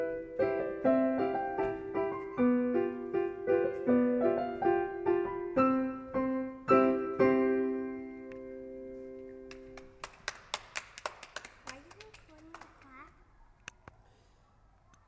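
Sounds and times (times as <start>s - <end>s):
piano: 0.0s - 11.7s.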